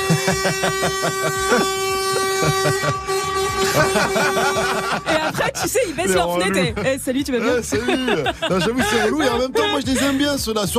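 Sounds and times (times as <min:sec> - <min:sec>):
car horn honking: 0:00.0 - 0:05.8
laughter: 0:00.0 - 0:10.4
speech: 0:00.1 - 0:10.7.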